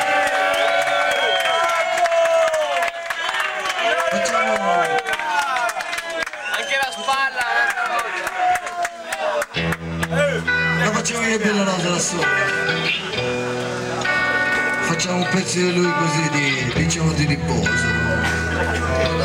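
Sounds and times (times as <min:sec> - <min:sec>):
crowd applauding: 0:00.0 - 0:14.8
crowd cheering and shouting: 0:00.0 - 0:19.2
speech: 0:11.4 - 0:13.5, 0:15.1 - 0:19.2.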